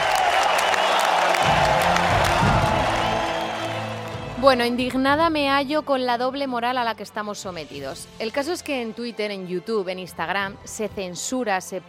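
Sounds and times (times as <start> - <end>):
audience ovation applause: 0.0 - 4.7
speech: 4.4 - 11.8.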